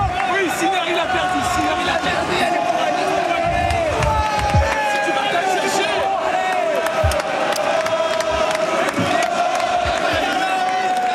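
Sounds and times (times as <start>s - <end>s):
tennis stadium crowd cheering and shouting: 0.0s - 11.1s.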